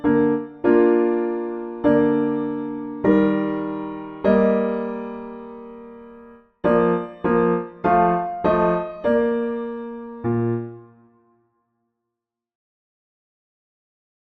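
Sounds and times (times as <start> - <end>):
piano backing for hymns: 0.0 - 11.1.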